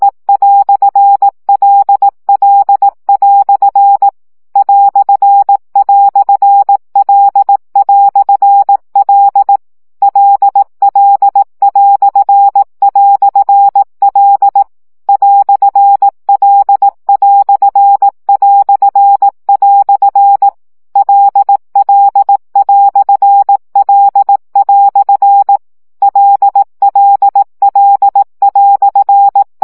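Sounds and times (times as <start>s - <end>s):
Morse code practice beeps at 15 baud: 0.0s - 29.6s.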